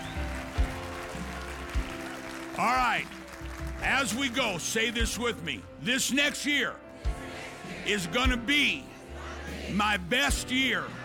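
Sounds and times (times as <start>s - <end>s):
congregation clap offering: 0.0s - 5.4s
speech: 2.6s - 3.2s, 3.8s - 6.8s, 7.9s - 8.9s, 9.5s - 11.0s.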